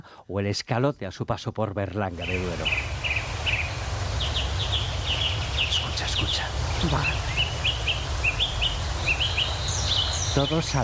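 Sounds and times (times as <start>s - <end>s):
speech: 0.3s - 3.0s, 6.8s - 7.2s, 10.4s - 10.8s
dawn chorus of blackbird, nightingale, orioles, shrike and great spotted woodpecker: 2.2s - 10.8s.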